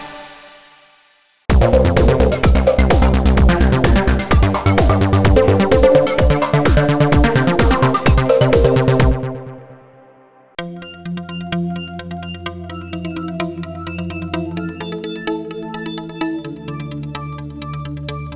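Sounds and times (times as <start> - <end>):
rhythmic sound: 1.5 - 9.5, 10.6 - 18.3.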